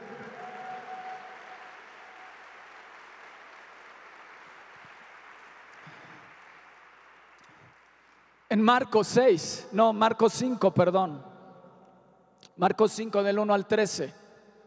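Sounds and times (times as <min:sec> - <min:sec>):
audience applause: 0:00.0 - 0:08.5
speech: 0:08.5 - 0:11.3, 0:12.6 - 0:14.2.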